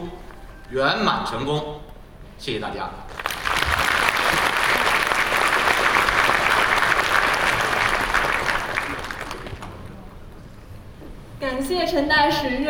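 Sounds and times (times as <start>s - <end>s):
speech: 0.1s - 3.3s, 11.6s - 12.6s
audience applause: 3.1s - 10.1s.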